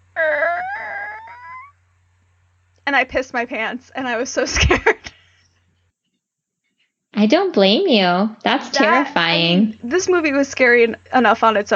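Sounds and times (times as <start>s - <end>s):
voice imitating attic door creaking open: 0.0s - 1.7s
speech: 2.9s - 5.1s, 7.2s - 11.7s.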